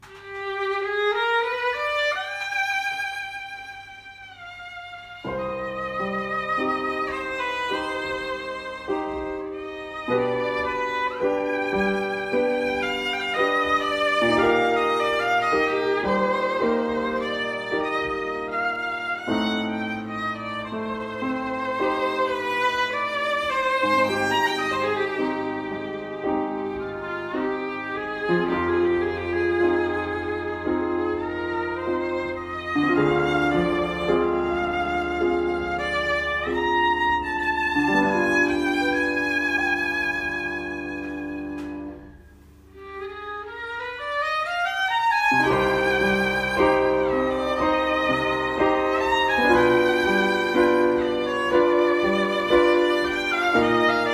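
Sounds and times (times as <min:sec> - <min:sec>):
etude in C minor: 0:00.0 - 0:54.1.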